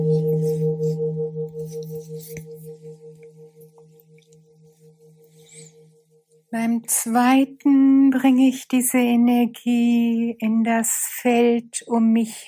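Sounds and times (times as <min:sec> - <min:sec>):
gong strike: 0:00.0 - 0:05.7
speech: 0:06.5 - 0:12.4.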